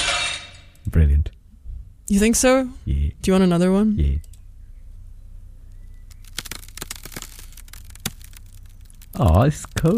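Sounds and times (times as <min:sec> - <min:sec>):
speech: 0:00.9 - 0:01.4, 0:02.1 - 0:04.4, 0:09.2 - 0:09.9
breaking ice cracking: 0:06.1 - 0:09.9.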